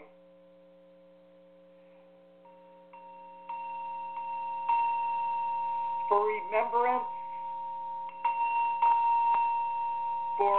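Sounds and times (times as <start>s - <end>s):
bell being sounded: 2.4s - 10.5s
speech: 6.1s - 7.1s, 10.4s - 10.5s.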